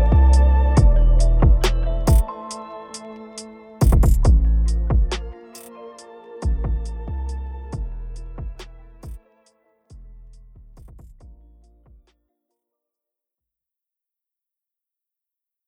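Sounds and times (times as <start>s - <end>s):
hip hop music: 0.0s - 12.1s.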